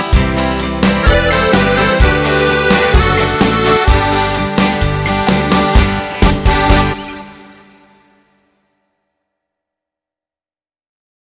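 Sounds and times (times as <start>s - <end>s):
shaking ballad music: 0.0s - 8.2s.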